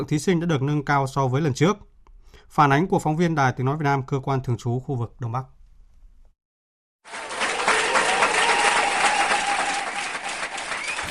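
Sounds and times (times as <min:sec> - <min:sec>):
speech: 0:00.0 - 0:05.6
audience applause in a concert hall: 0:07.1 - 0:11.0.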